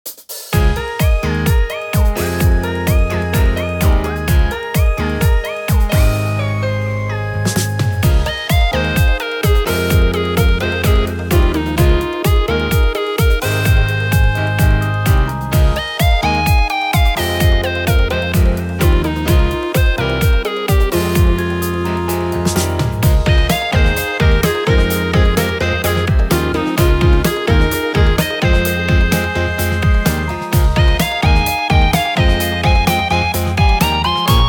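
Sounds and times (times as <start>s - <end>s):
music at an event: 0.1s - 34.4s.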